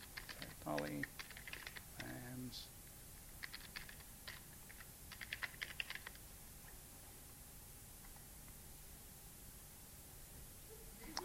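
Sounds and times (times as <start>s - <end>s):
computer keyboard typing a student's name: 0.0s - 2.2s, 3.4s - 6.2s
speech: 0.6s - 1.2s, 2.0s - 2.8s.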